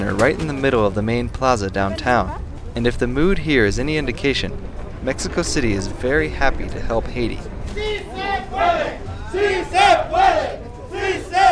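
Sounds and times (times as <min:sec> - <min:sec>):
speech: 0:00.1 - 0:11.4
bus drivers and policemen chanting in unison: 0:07.8 - 0:11.4.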